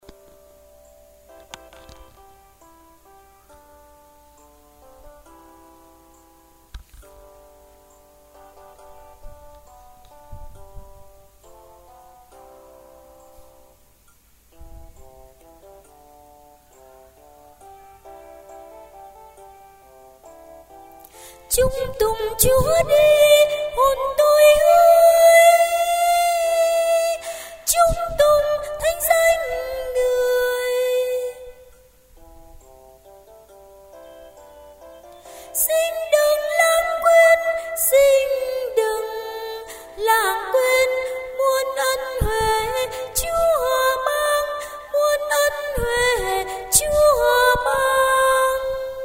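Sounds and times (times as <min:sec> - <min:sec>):
tenor singing: 0:21.1 - 0:32.0, 0:35.1 - 0:49.0.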